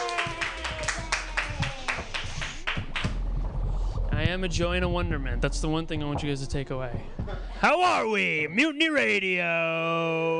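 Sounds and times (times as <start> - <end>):
audience applause for a comedian at a stand-up comedy show: 0.0 - 3.1
speech: 4.3 - 10.3.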